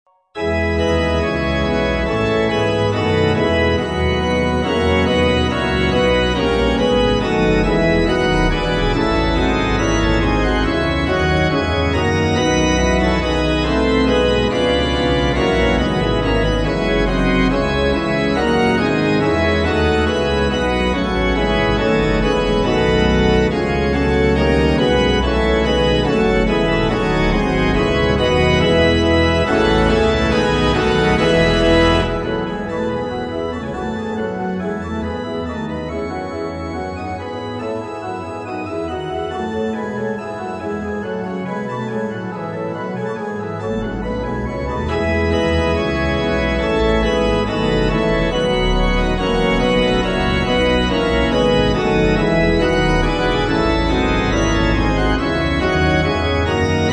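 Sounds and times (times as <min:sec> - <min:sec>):
organ with reverb: 0:00.4 - 0:56.9.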